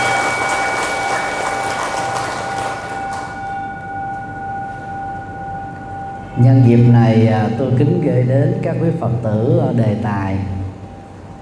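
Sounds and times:
loud round of applause: 0.0s - 3.6s
faint sustained humming tones: 0.0s - 11.4s
speech: 6.4s - 10.6s.

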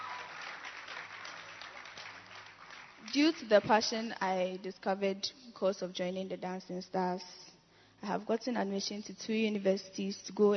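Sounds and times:
people clapping: 0.0s - 3.7s
speech: 3.1s - 7.4s, 8.0s - 10.5s.

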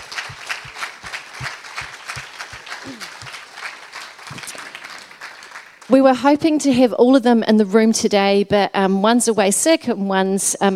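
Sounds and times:
audience applause: 0.0s - 5.9s
speech: 5.9s - 10.7s.

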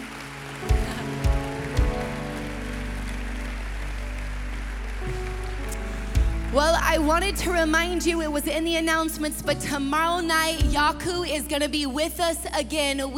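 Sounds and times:
audience applause: 0.0s - 7.6s
speech: 6.6s - 13.1s.

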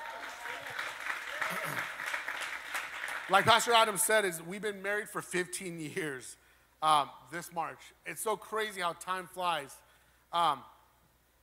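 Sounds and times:
audience applause: 0.0s - 3.8s
speech: 3.3s - 10.7s.

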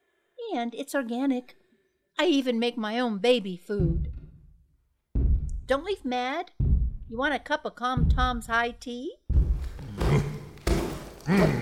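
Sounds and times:
speech: 0.5s - 1.6s, 2.2s - 4.1s, 5.7s - 9.2s, 11.3s - 11.6s
feet stomping on a garden: 3.8s - 4.6s, 5.2s - 5.7s, 6.6s - 7.1s, 8.0s - 8.6s, 9.3s - 11.6s.

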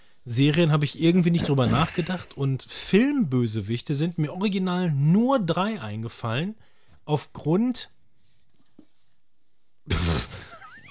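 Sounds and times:
speech: 0.2s - 8.0s
sneeze: 9.9s - 10.5s
laughter: 10.3s - 10.8s.

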